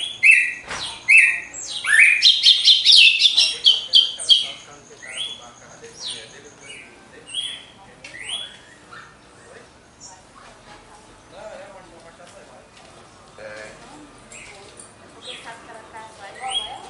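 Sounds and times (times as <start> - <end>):
Red-cowled cardinal whistling: 0.0 - 10.5, 16.3 - 16.8.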